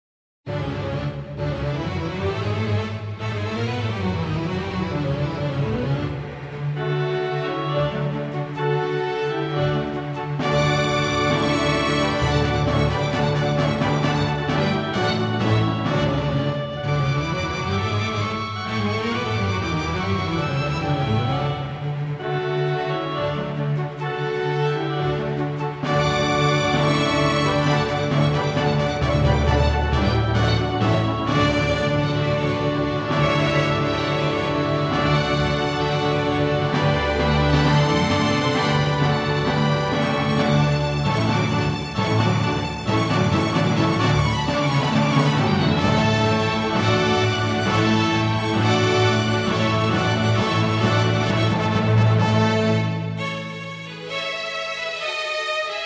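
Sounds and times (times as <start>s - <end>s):
easy listening and classical music: 0.5s - 55.8s.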